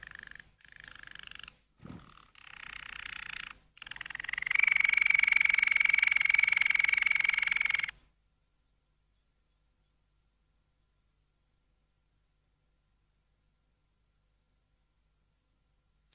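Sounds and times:
canary song: 0:00.0 - 0:08.0, 0:08.6 - 0:11.1.

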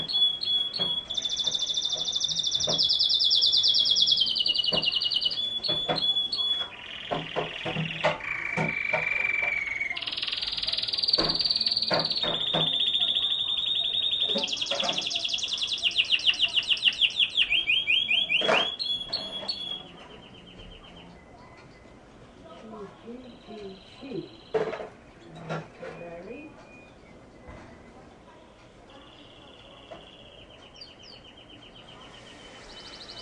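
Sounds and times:
canary singing: 0:00.0 - 0:33.2.

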